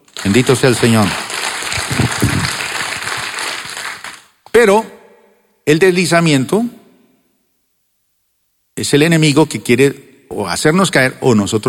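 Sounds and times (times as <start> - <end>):
crowd clapping: 0.0 - 4.4
speech: 0.2 - 1.3, 4.6 - 5.0, 5.6 - 6.8, 8.8 - 11.6.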